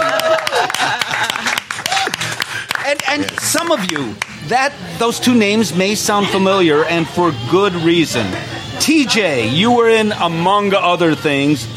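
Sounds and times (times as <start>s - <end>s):
shouts and whoops: 0.0s - 1.0s, 1.7s - 2.3s
laughter: 0.0s - 3.7s, 7.8s - 9.8s
audience clapping: 0.0s - 4.4s
speech: 3.1s - 11.7s.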